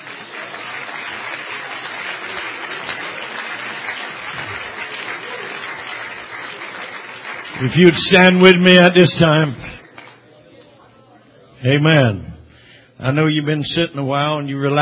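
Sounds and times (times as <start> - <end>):
church congregation applauding: 0.0 - 10.7
speech: 7.6 - 9.7, 11.6 - 12.3, 13.0 - 14.8.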